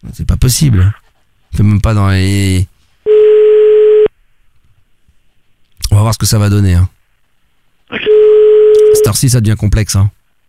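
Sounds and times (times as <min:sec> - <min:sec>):
speech: 0:00.1 - 0:02.7, 0:05.9 - 0:07.0, 0:07.9 - 0:08.2, 0:08.9 - 0:10.2
steady telephone line signal while placing a call: 0:03.1 - 0:04.1, 0:08.0 - 0:09.2.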